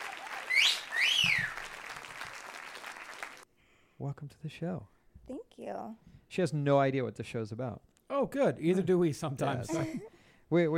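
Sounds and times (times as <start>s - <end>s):
crowd applause: 0.0s - 3.4s
swooping whistles: 0.4s - 1.8s
speech: 4.0s - 10.7s.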